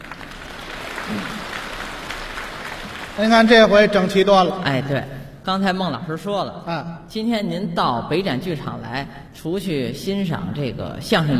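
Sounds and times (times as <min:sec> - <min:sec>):
audience applause at a crosstalk show in the Beijing Exhibition Theater: 0:00.0 - 0:04.5
speech: 0:01.1 - 0:01.3, 0:03.2 - 0:11.3.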